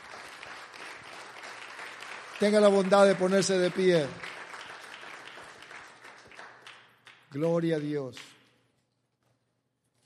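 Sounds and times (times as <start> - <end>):
audience applause: 0.0 - 7.9
speech: 2.4 - 4.3, 7.3 - 8.3.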